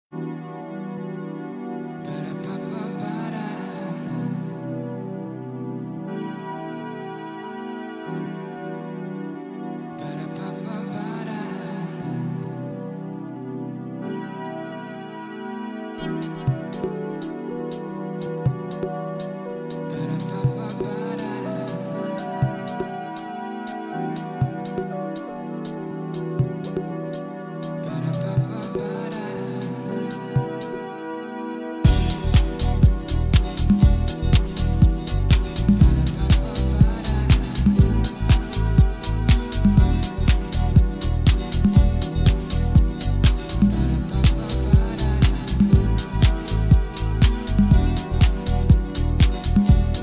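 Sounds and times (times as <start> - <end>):
vocals at 432 Hz: 1.9 - 7.0, 9.8 - 14.8, 16.0 - 50.0.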